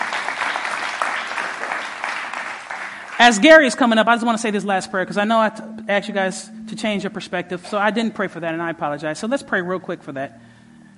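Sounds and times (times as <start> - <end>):
audience clapping: 0.0 - 3.7
speech: 3.2 - 10.5.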